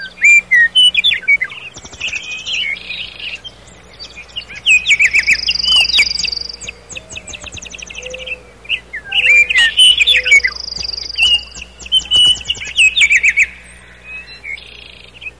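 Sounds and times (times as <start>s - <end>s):
nightingale singing: 0.0s - 15.3s.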